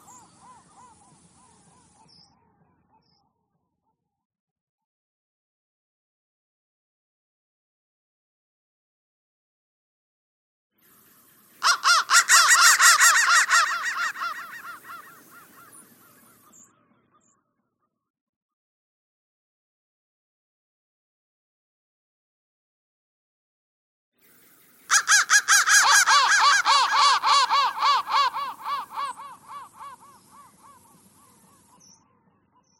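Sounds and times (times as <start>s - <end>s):
crow cawing: 11.6s - 16.4s, 24.9s - 31.3s.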